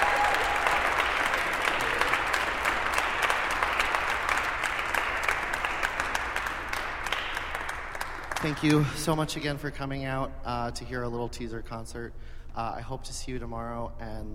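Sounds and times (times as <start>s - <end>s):
crowd applauding for singers: 0.0s - 9.2s
speech: 8.4s - 14.3s.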